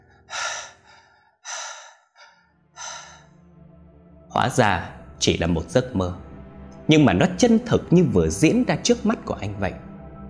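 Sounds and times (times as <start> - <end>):
heavy labored breathing after waking: 0.0 - 3.3
speech: 4.4 - 6.3, 6.9 - 9.9.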